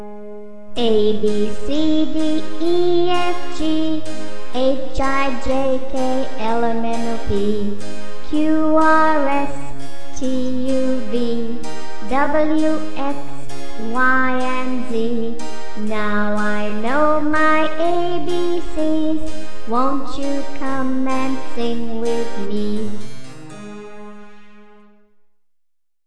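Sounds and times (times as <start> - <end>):
children's song: 0.8 - 24.3.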